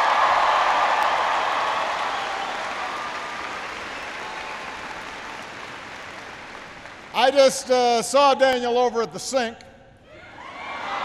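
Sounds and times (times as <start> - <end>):
audience applause for an introduction: 0.0 - 7.3
speech: 7.2 - 9.7.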